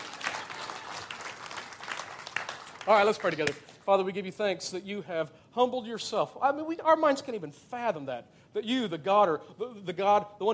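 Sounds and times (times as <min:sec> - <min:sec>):
audience applause: 0:00.0 - 0:03.6
speech: 0:02.9 - 0:10.5.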